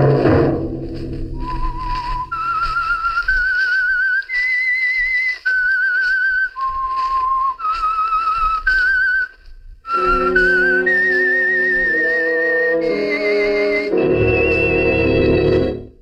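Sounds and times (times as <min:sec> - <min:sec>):
low sustained accompaniment: 0:00.0 - 0:02.5, 0:10.0 - 0:15.9
whistled theme melody from a radio drama: 0:01.0 - 0:16.0.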